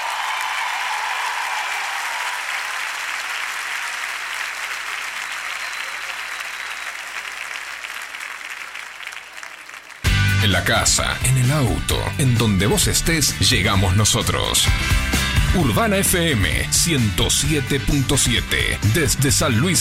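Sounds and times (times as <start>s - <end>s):
large audience applause: 0.0s - 10.6s
speech: 10.5s - 19.7s.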